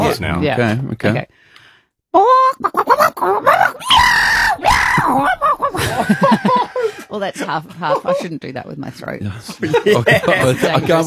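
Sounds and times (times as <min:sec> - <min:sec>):
speech: 0:00.0 - 0:01.4, 0:02.1 - 0:06.4, 0:07.1 - 0:11.0
person vocally imitating a chicken fighting a cat: 0:02.2 - 0:05.8
laughter: 0:04.6 - 0:08.8, 0:09.5 - 0:11.0.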